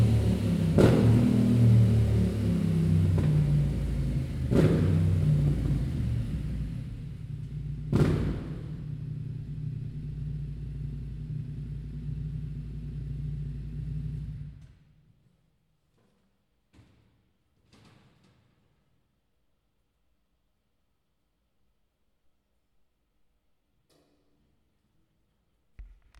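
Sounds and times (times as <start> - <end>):
Yamaha Tenere 700 motorcycle: 0.0 - 15.0.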